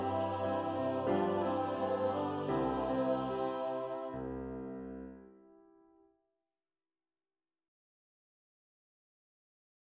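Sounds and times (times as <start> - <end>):
piano: 0.0 - 6.1.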